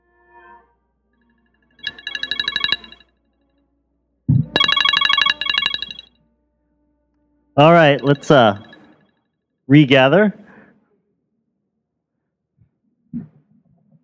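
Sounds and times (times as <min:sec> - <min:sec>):
timer alarm ringing: 0:01.8 - 0:03.0, 0:04.4 - 0:06.1, 0:07.6 - 0:09.0
speech: 0:07.6 - 0:08.7, 0:09.7 - 0:10.4.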